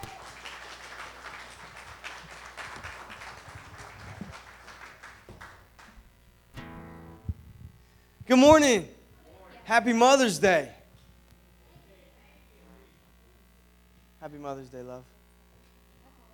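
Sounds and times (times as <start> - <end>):
audience applause: 0.0 - 6.1
speech: 8.3 - 8.9, 9.7 - 10.8, 14.4 - 15.2.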